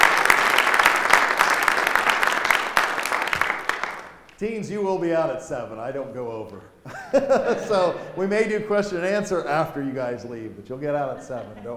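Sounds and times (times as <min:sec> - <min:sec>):
audience applause: 0:00.0 - 0:04.4
speech: 0:04.4 - 0:11.7
laughter: 0:06.9 - 0:08.6, 0:10.8 - 0:11.7.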